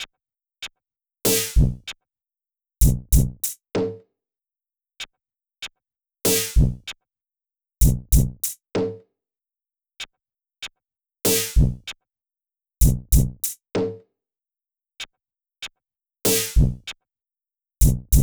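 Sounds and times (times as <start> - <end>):
drums at 96 bpm: 1.3 - 1.9, 2.8 - 4.0, 6.3 - 6.9, 7.8 - 9.0, 11.3 - 11.9, 12.8 - 14.0, 16.3 - 16.9, 17.8 - 18.2.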